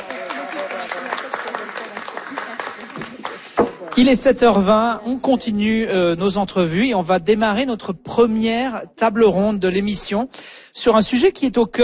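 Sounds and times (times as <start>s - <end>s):
audience applause: 0.0s - 4.1s
speech: 4.0s - 11.8s.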